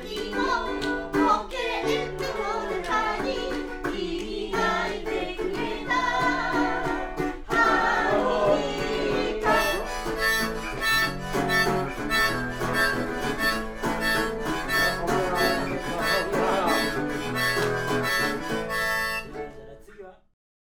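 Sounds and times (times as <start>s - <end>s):
harmonica: 0.3s - 19.6s.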